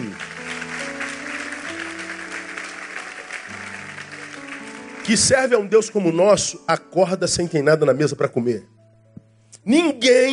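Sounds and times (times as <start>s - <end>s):
audience applauding: 0.0s - 6.1s
speech: 5.1s - 8.8s, 9.6s - 10.3s.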